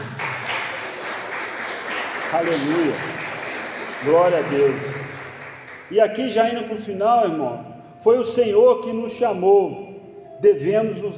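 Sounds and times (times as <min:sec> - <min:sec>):
applause for Jesus: 0:00.0 - 0:06.2
speech: 0:02.3 - 0:03.2, 0:04.0 - 0:05.0, 0:05.9 - 0:09.8, 0:10.4 - 0:11.1.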